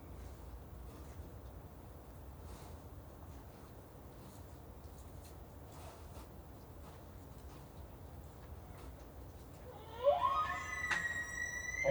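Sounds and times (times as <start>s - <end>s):
bull elk bugling: 9.7s - 11.8s.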